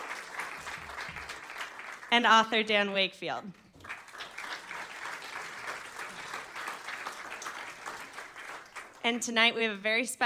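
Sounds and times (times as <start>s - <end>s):
audience applause: 0.0s - 2.2s, 3.7s - 9.0s
speech: 2.1s - 3.6s, 9.0s - 10.2s.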